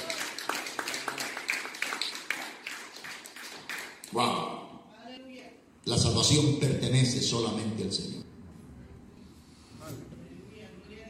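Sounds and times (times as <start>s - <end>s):
audience applauding: 0.0s - 4.1s
speech: 4.1s - 4.3s, 5.9s - 8.3s.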